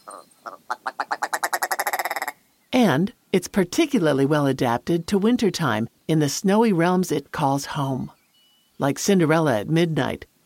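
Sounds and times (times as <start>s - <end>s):
ptarmigan rattling call: 0.0s - 2.4s
speech: 0.1s - 0.8s, 2.8s - 8.2s, 8.8s - 10.3s.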